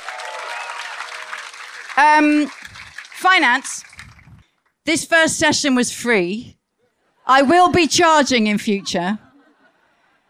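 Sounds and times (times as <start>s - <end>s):
round of applause: 0.0s - 4.6s
speech: 2.0s - 2.6s, 3.2s - 3.9s, 4.8s - 6.6s, 7.3s - 9.2s.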